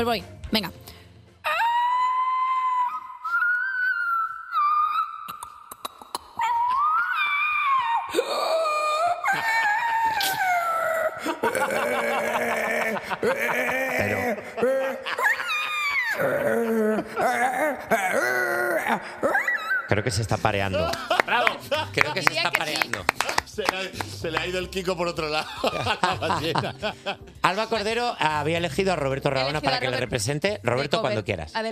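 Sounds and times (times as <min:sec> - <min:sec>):
speech: 0:00.0 - 0:00.8, 0:20.0 - 0:31.6
person imitating a whale with moaning wails: 0:01.5 - 0:19.9
laughter: 0:09.0 - 0:27.8.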